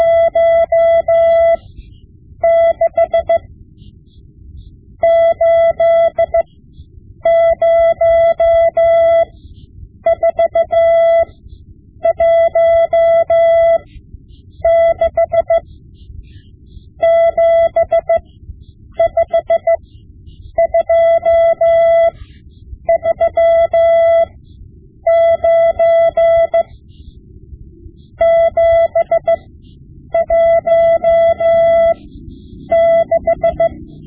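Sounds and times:
Morse code lessons: 0.0 - 4.2, 5.0 - 6.6, 7.2 - 27.2, 28.0 - 34.0.

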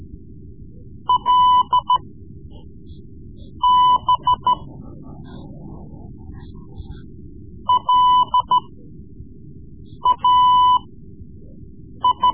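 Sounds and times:
Morse code lessons: 1.1 - 2.0, 3.6 - 4.7, 7.7 - 8.6, 10.1 - 10.9, 12.0 - 12.3.

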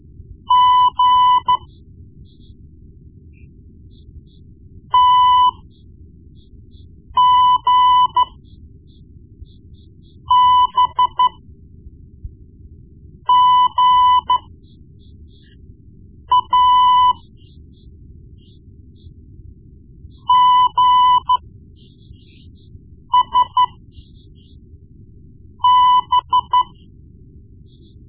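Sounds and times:
morse code beeps: 0.5 - 1.7, 5.0 - 5.6, 7.2 - 8.4, 10.2 - 11.4, 13.3 - 14.5, 16.3 - 17.3, 20.2 - 21.4, 23.1 - 24.5, 25.6 - 26.8.

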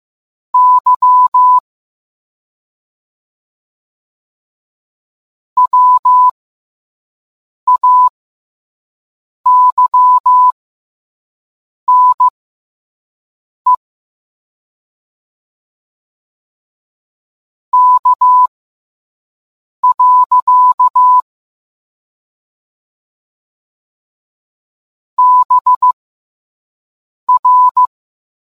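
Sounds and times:
morse code beeps: 0.6 - 1.6, 5.6 - 6.3, 7.7 - 8.1, 9.5 - 10.6, 11.9 - 12.3, 17.8 - 18.5, 19.8 - 21.2, 25.2 - 26.0, 27.3 - 27.9.

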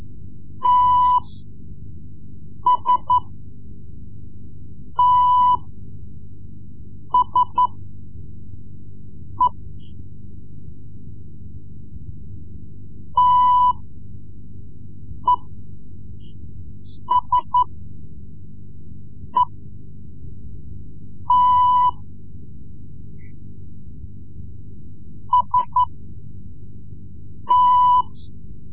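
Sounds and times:
Morse code lessons: 0.6 - 1.3, 2.7 - 3.3, 5.0 - 5.6, 7.2 - 7.8, 13.2 - 13.8, 17.0 - 17.7, 21.3 - 22.0, 25.4 - 25.9, 27.5 - 28.2.

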